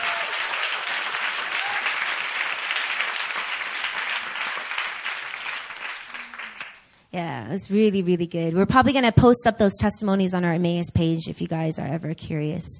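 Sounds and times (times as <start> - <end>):
audience applause: 0.0 - 6.8
speech: 7.1 - 12.7.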